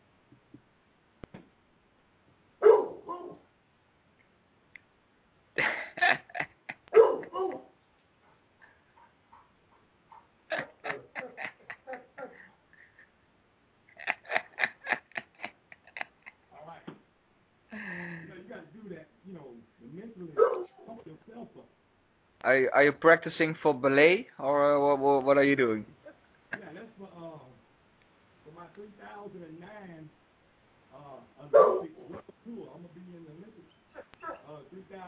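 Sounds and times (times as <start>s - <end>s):
dog barking: 2.6s - 3.4s, 6.9s - 7.8s, 20.4s - 20.9s, 31.5s - 32.2s, 34.0s - 34.5s
laughter: 5.6s - 7.6s, 10.5s - 13.0s, 13.9s - 16.6s, 17.7s - 18.6s
speech: 22.4s - 25.9s.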